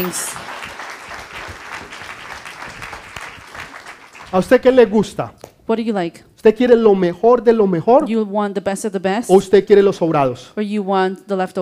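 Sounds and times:
speech: 0.0 - 0.6, 4.3 - 11.6
audience clapping: 0.0 - 4.8.

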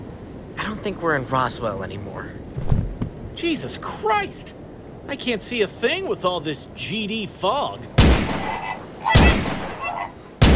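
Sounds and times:
faint hum: 0.0 - 10.5
speech: 0.8 - 2.8, 3.4 - 8.9
gunshots: 8.0 - 10.5.

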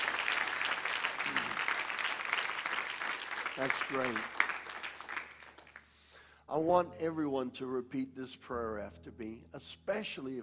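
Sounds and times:
audience applause: 0.0 - 5.9
speech: 3.6 - 4.4, 6.5 - 10.4.

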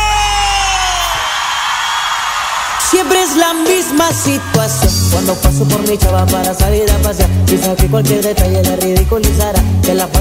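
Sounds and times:
Mexican grito yell: 0.0 - 4.8
speech: 2.9 - 10.1.

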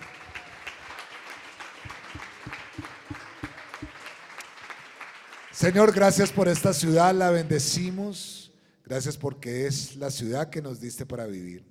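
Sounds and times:
applause: 0.0 - 7.1
speech: 5.6 - 11.7.

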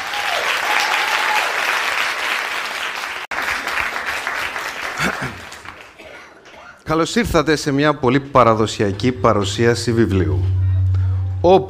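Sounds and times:
warm audience applause: 0.0 - 6.5
speech: 6.9 - 10.6, 11.4 - 11.6.

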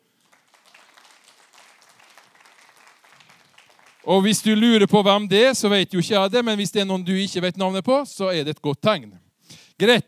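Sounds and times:
audience applause welcoming newcomers: 0.0 - 4.4
speech: 4.1 - 9.2, 9.8 - 10.0.

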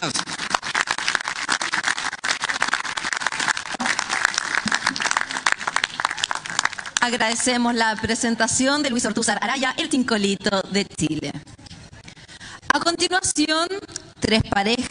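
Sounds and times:
audience applause: 0.0 - 8.2
speech: 7.0 - 11.5, 13.0 - 14.8.

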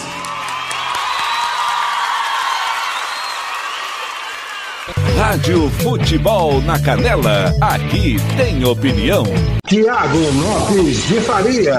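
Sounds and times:
crowd applauding: 0.0 - 5.5
shrill whistles: 0.6 - 4.8
speech: 4.9 - 11.7.

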